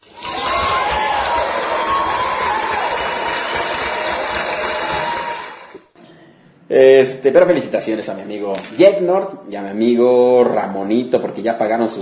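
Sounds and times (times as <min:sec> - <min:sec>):
applause and cheering sound effect: 0:00.0 - 0:05.9
speech: 0:06.8 - 0:12.0.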